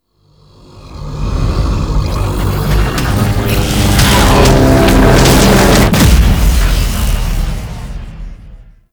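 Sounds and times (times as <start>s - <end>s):
transition stinger: 2.1s - 8.8s.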